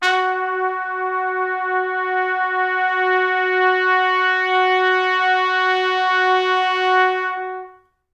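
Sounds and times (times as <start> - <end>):
pop brass F sharp 3 note: 0.0 - 7.8.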